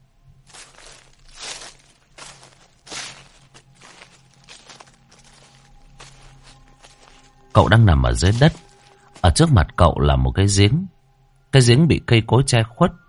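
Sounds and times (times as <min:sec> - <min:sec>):
footsteps of shoes walking on grass in a dark forest: 0:00.4 - 0:09.6
speech: 0:07.6 - 0:08.6, 0:09.4 - 0:13.0.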